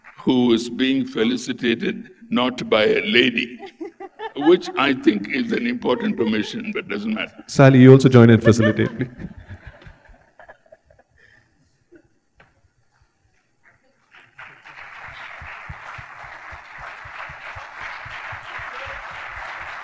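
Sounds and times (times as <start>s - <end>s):
speech: 0.2s - 3.8s, 4.4s - 9.4s
laughter: 2.7s - 12.2s
crowd murmuring: 2.8s - 9.9s
crowd applause: 4.3s - 10.0s, 14.0s - 19.8s.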